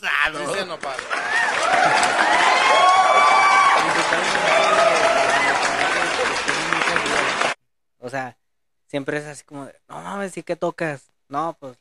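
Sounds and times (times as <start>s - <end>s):
applause: 0.0s - 7.6s
speech: 0.2s - 1.2s, 8.1s - 11.7s.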